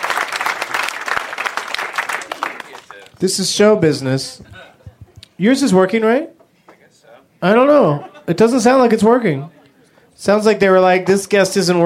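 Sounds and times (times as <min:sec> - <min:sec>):
audience applause: 0:00.0 - 0:03.2
speech: 0:03.2 - 0:04.5, 0:05.4 - 0:06.3, 0:07.4 - 0:09.6, 0:10.2 - 0:11.8
laughter: 0:04.3 - 0:05.4, 0:07.8 - 0:08.9.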